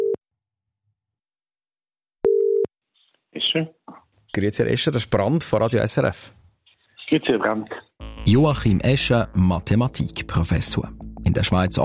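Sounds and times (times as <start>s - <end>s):
telephone ringing tone: 2.2s - 2.7s
speech: 3.3s - 6.4s, 7.1s - 11.8s.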